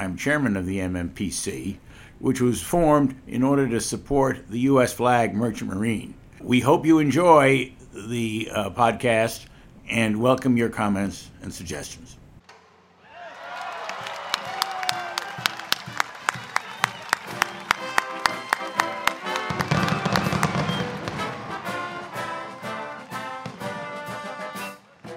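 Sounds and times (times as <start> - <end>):
speech: 0.0 - 12.2
crowd cheering and applause at the ship launch: 13.0 - 25.1
sharp cracks at the launch of container ship Isla Bella in San Diego: 19.1 - 24.0.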